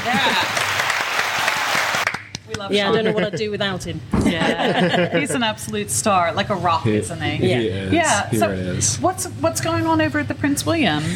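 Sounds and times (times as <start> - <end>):
laughter: 0.0 - 0.8, 2.8 - 3.6, 4.2 - 5.5
audience applause: 0.0 - 2.4
speech: 2.6 - 11.1.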